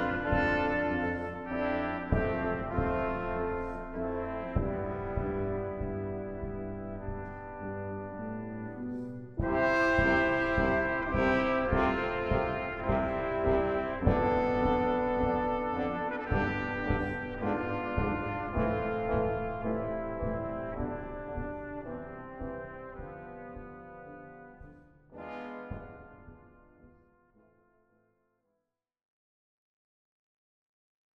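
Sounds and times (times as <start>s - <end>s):
fanfare: 0.0s - 24.6s
introit music: 0.0s - 26.6s.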